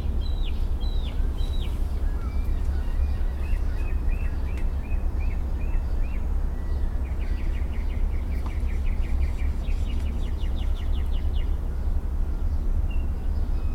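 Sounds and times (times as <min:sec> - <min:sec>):
mockingbird singing: 0:00.0 - 0:13.7.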